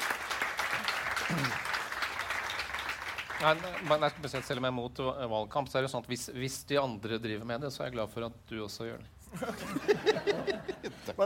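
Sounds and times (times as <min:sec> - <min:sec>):
crowd clapping: 0:00.0 - 0:04.7
speech: 0:01.3 - 0:01.6, 0:03.4 - 0:11.2
laughter: 0:09.3 - 0:11.2.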